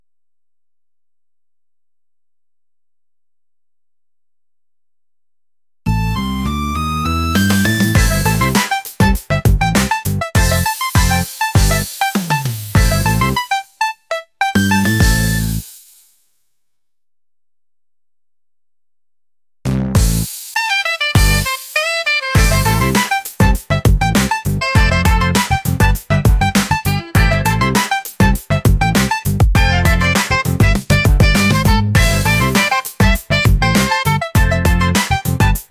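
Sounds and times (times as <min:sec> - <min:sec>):
breakbeat boogie music: 0:05.9 - 0:16.1, 0:19.7 - 0:35.6.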